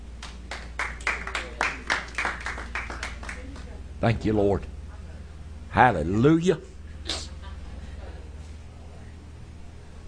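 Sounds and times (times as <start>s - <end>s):
audience clapping: 0.2s - 3.8s
speech: 4.0s - 4.7s, 5.7s - 6.7s.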